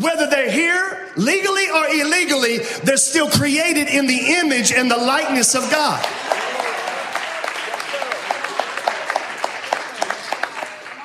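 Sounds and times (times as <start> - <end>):
speech: 0.0 - 6.5
audience clapping: 5.2 - 11.0.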